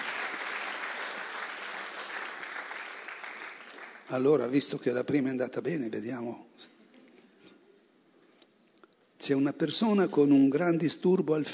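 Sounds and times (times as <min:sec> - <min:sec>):
audience applause: 0:00.0 - 0:04.2
speech: 0:04.1 - 0:06.8, 0:09.3 - 0:11.5.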